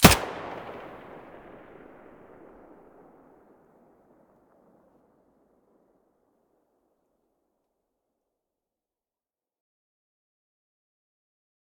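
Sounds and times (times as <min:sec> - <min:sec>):
MP5 submachine gun muzzle blast: 0:00.0 - 0:02.1.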